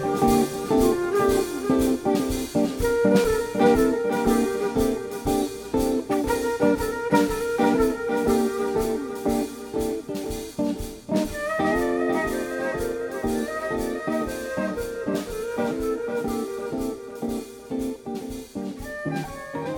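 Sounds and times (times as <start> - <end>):
jazzy music at 120 bpm: 0.0 - 19.7.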